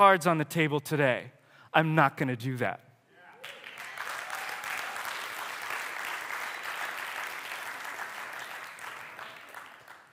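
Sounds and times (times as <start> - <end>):
speech: 0.0 - 2.8
hand clapping: 3.4 - 10.1.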